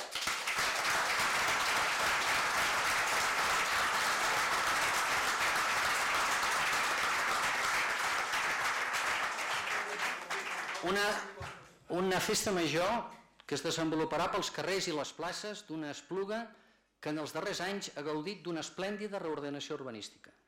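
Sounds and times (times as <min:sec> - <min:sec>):
audience applause: 0:00.0 - 0:11.4
speech: 0:10.9 - 0:11.3, 0:11.9 - 0:20.4.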